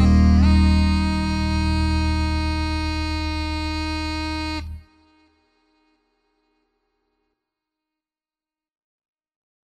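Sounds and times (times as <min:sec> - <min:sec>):
trumpet: 0:00.0 - 0:05.4.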